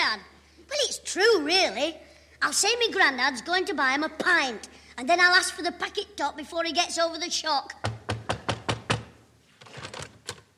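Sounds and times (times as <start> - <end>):
speech: 1.2 - 7.9
loud knocking on a door: 7.8 - 9.1.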